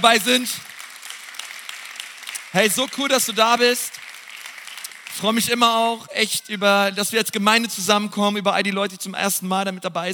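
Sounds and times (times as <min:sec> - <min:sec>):
speech: 0:00.0 - 0:00.7, 0:02.5 - 0:04.0, 0:05.2 - 0:10.1
audience applause: 0:00.0 - 0:05.6.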